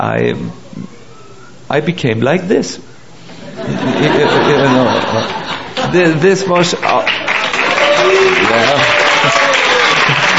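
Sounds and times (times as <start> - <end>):
speech: 0.0 - 1.0, 1.7 - 2.9, 3.6 - 7.3, 8.4 - 8.9
laughter: 3.3 - 6.5, 7.4 - 10.3
audience applause: 4.6 - 10.3.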